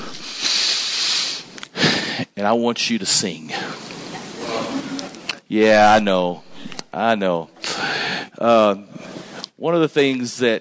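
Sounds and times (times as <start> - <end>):
audience taking a deep breath together: 0.0 - 2.4, 3.5 - 5.3, 6.5 - 6.9, 7.6 - 8.4
speech: 2.4 - 3.8, 5.5 - 7.5, 8.4 - 9.0, 9.6 - 10.5.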